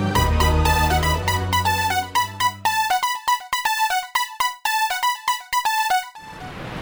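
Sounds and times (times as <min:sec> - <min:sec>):
instrumental music: 0:00.2 - 0:06.5.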